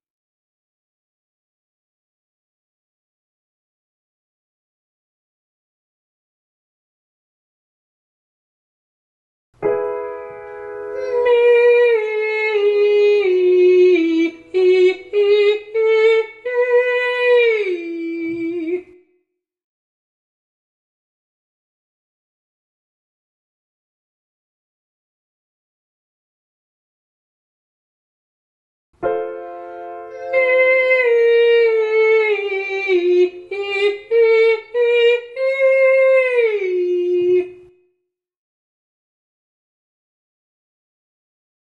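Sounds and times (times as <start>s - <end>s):
person singing legato and staccato ascending to high G: 10.9s - 19.0s, 30.0s - 37.7s.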